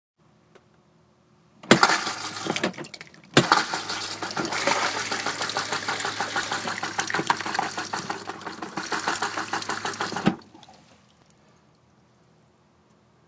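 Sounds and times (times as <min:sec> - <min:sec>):
toilet sound: 0:01.7 - 0:11.1.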